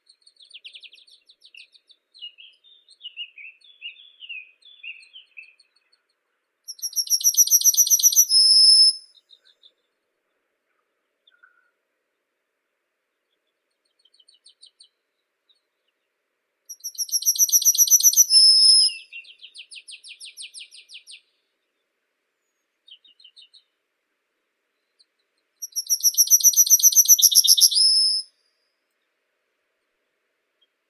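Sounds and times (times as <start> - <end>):
yellowhammer Emberiza citrinella: 0.1 - 6.0, 6.7 - 9.9, 16.7 - 21.4, 24.8 - 28.3.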